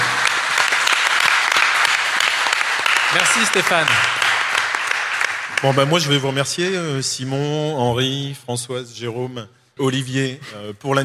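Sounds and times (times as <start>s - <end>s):
audience applause: 0.0s - 6.6s
speech: 3.2s - 4.2s, 5.6s - 11.0s.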